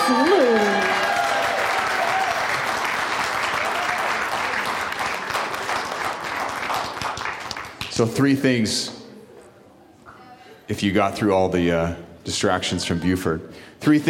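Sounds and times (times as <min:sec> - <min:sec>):
audience applause: 0:00.0 - 0:07.9
speech: 0:08.0 - 0:09.0, 0:10.7 - 0:14.0.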